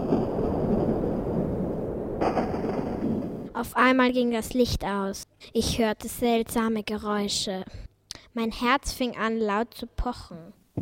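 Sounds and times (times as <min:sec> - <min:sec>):
thunderstorm rumbling: 0:00.0 - 0:03.7
speech: 0:03.6 - 0:10.7.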